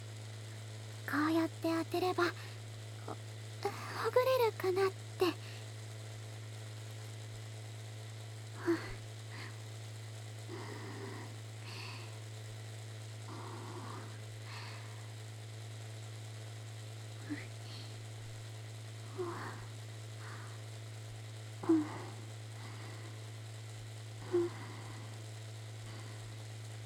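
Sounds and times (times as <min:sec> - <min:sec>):
electric massager: 0:00.0 - 0:26.8.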